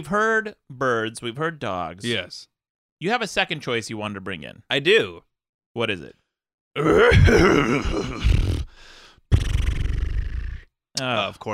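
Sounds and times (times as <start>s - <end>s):
speech: 0.0s - 6.2s, 6.8s - 8.5s, 11.0s - 11.5s
person imitating a horse whinny and snort: 6.8s - 8.7s, 9.3s - 10.7s.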